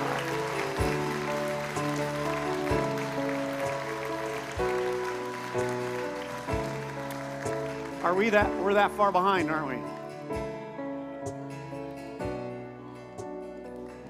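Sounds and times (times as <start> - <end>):
audience applauding: 0.0 - 10.6, 13.6 - 14.0
speech: 8.1 - 9.9.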